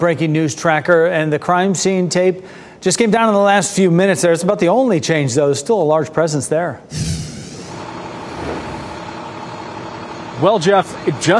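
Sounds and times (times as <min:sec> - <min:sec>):
speech: 0:00.0 - 0:07.3, 0:10.4 - 0:11.3
engine rumble of Durham Police Mobile Command Unit truck: 0:06.9 - 0:10.4.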